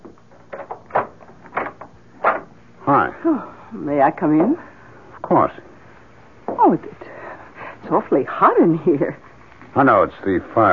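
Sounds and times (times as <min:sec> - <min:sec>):
door being unlocked and opened: 0:00.3 - 0:02.5
speech: 0:03.2 - 0:04.7, 0:05.3 - 0:05.7, 0:06.6 - 0:07.0, 0:07.9 - 0:10.7.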